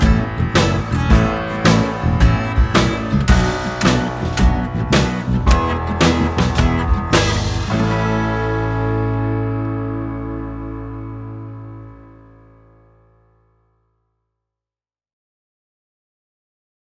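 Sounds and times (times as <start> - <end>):
instrumental music: 0.0 - 12.7.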